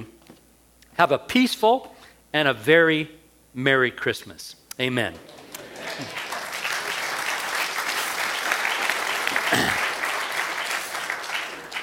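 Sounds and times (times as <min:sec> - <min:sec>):
speech: 0:01.0 - 0:05.4, 0:06.0 - 0:06.2
applause at end of sermon: 0:05.3 - 0:11.8.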